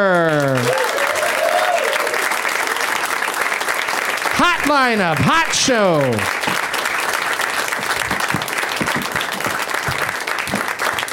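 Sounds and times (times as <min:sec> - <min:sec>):
speech: 0:00.0 - 0:00.8, 0:04.7 - 0:06.4
voices cheering: 0:00.0 - 0:02.4, 0:04.4 - 0:06.5
audience applause welcoming guests onto a comedy show: 0:00.0 - 0:11.1.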